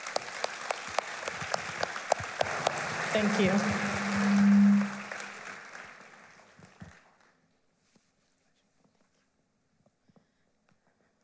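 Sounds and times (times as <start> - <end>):
audience clapping to welcome a speaker at a morning service: 0.0 - 7.4
speech: 3.1 - 4.0.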